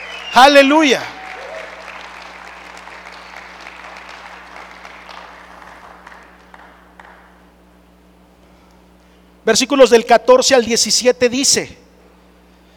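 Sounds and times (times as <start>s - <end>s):
audience applauding: 0.0s - 7.4s
speech: 0.3s - 1.2s, 9.5s - 11.8s.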